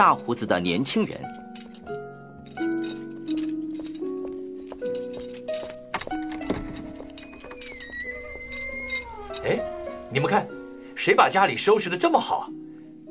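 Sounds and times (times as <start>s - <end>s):
speech: 0.0s - 2.0s, 9.4s - 12.6s
footsteps: 2.6s - 10.0s
horse hooves clip-clopping: 2.6s - 10.0s.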